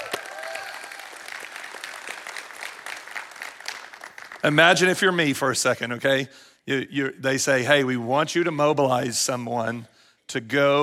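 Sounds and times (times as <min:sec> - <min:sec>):
audience applause: 0:00.0 - 0:04.8
speech: 0:04.4 - 0:10.8.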